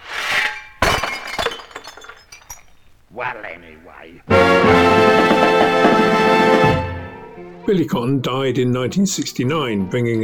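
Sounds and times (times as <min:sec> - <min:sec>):
crockery crashing and breaking: 0:00.0 - 0:03.0, 0:04.4 - 0:06.8
speech: 0:03.1 - 0:05.6, 0:07.7 - 0:10.2.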